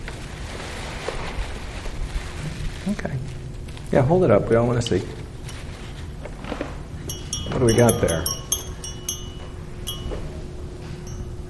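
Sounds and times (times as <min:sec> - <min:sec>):
speech: 0:02.9 - 0:05.2, 0:07.6 - 0:08.4
wind chime tinkling: 0:07.1 - 0:11.4.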